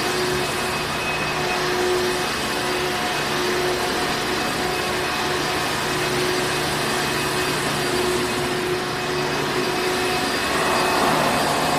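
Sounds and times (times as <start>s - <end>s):
vacuum running: 0.0s - 11.7s.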